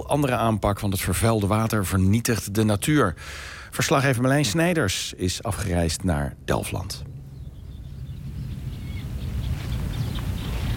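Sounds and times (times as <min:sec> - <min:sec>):
speech: 0:00.1 - 0:07.1
Eurasian reed warbler singing: 0:06.6 - 0:10.7.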